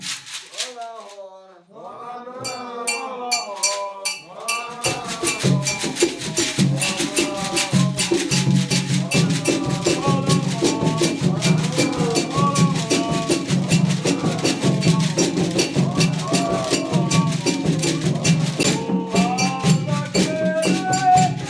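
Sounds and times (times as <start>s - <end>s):
tambor de mina drumming: 0.0s - 1.0s, 2.5s - 21.4s.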